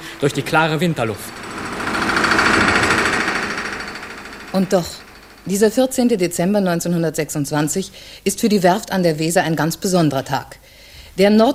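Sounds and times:
rivet hammers knocking at the Weser shipyard in Bremen: 0:00.0 - 0:06.2
speech: 0:00.2 - 0:01.4, 0:04.5 - 0:10.6, 0:11.2 - 0:11.5.

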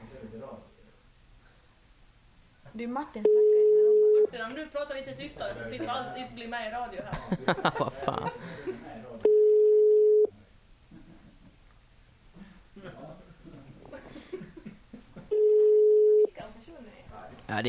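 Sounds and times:
speech: 0:02.7 - 0:03.4, 0:04.3 - 0:09.3
telephone ringing tone as a phone call is placed: 0:03.3 - 0:04.3, 0:09.3 - 0:10.3, 0:15.3 - 0:16.3
laughter: 0:07.1 - 0:09.0, 0:12.4 - 0:15.4.

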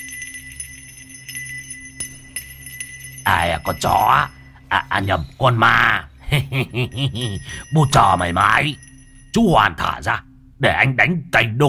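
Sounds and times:
handbell being shaken, jingling: 0:00.0 - 0:09.8
speech: 0:03.2 - 0:11.6.

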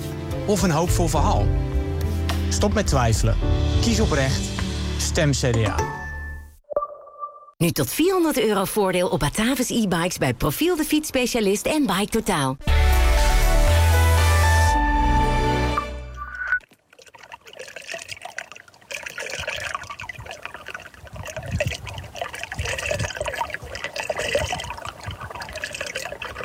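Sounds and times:
music: 0:00.0 - 0:06.6, 0:12.6 - 0:16.2
speech: 0:00.5 - 0:01.7, 0:02.5 - 0:06.0, 0:07.6 - 0:12.9
water flowing along a path and plunging into a small vertical whirlpool: 0:16.2 - 0:26.4.

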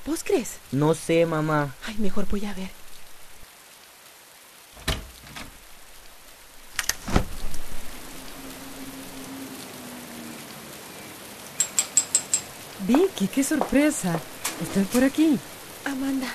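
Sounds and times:
steady rain: 0:00.0 - 0:16.3
speech: 0:00.1 - 0:02.8, 0:12.9 - 0:16.3
low humming tone: 0:07.5 - 0:11.4.

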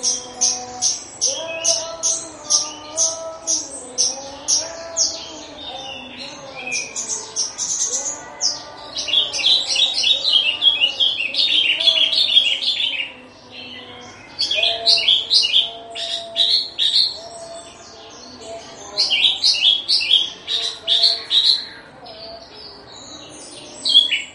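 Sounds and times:
Horsfield's bush lark song: 0:00.0 - 0:24.3.

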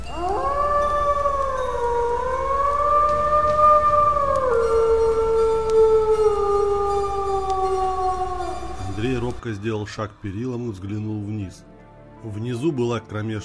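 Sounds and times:
eerie distant howl echoing through a forest: 0:00.0 - 0:10.4
speech: 0:09.6 - 0:13.4.

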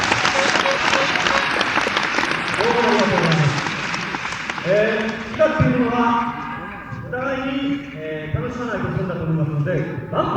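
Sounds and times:
concert audience applause for a 1970s idol trio: 0:00.0 - 0:06.0
crowd noise: 0:00.0 - 0:10.3
speech: 0:04.7 - 0:06.4, 0:07.2 - 0:10.3.

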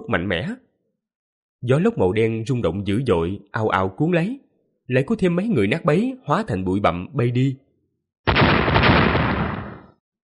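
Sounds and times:
speech: 0:00.1 - 0:00.7, 0:01.6 - 0:07.6
thunderous explosions: 0:08.3 - 0:10.0.

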